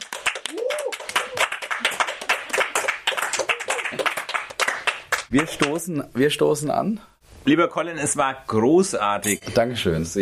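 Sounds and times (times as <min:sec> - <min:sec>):
applause, hands clapping: 0:00.0 - 0:05.9
speech: 0:05.3 - 0:10.2.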